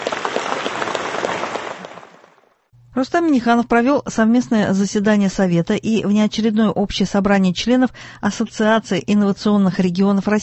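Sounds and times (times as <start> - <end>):
applause for a farm worker at an awards ceremony: 0.0 - 2.5
speech: 3.0 - 10.4.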